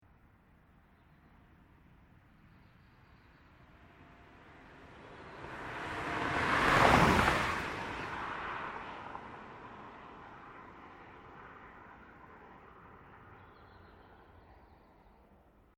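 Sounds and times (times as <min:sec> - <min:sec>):
car: 0:00.0 - 0:15.7.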